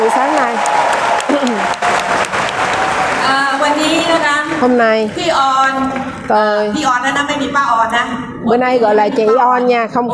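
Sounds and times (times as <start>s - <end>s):
audience applause: 0.0s - 6.6s
speech: 4.6s - 10.1s.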